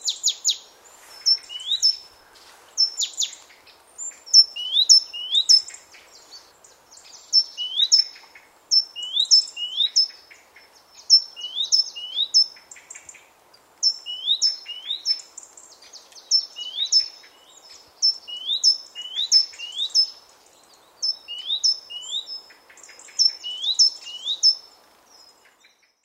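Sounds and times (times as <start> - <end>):
great tit calling: 0.0 - 2.2, 4.0 - 13.2, 15.9 - 20.2, 21.0 - 24.7.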